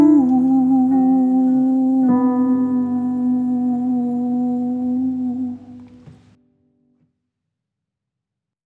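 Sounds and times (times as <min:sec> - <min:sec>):
alto singing a hymn: 0:00.0 - 0:06.2.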